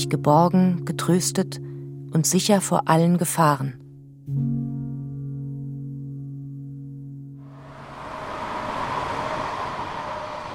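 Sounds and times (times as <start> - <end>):
speech: 0.0 - 4.5
four-lane car traffic on the Wettstein Bridge in Basel: 7.4 - 10.5.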